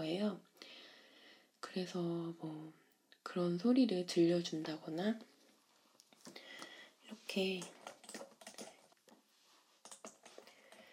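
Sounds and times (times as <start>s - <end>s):
speech: 0.0s - 0.5s, 1.7s - 5.3s, 7.1s - 7.8s
typing on a computer keyboard for ASMR: 7.6s - 8.9s, 9.8s - 10.9s.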